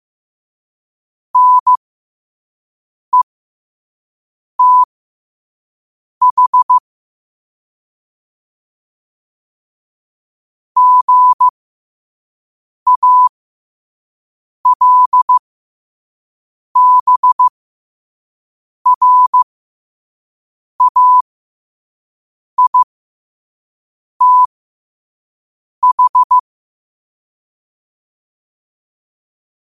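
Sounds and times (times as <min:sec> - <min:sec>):
morse code at 5 wpm: 0:01.4 - 0:01.8, 0:04.6 - 0:04.9, 0:06.2 - 0:06.8, 0:10.8 - 0:11.5, 0:12.9 - 0:13.3, 0:14.7 - 0:15.4, 0:16.8 - 0:17.5, 0:18.9 - 0:19.4, 0:20.8 - 0:21.2, 0:22.6 - 0:22.9, 0:24.2 - 0:24.5, 0:25.8 - 0:26.4.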